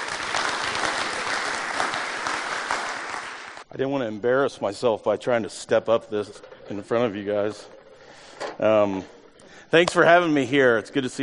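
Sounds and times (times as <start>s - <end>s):
church audience applauding a guest speaker: 0.0s - 3.6s
speech: 3.8s - 7.8s, 8.5s - 11.2s.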